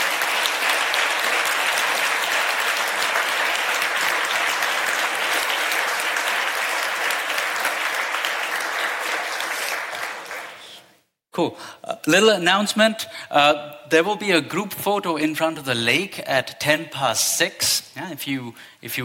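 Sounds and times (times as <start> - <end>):
audience applause: 0.0 - 10.9
speech: 11.4 - 19.0.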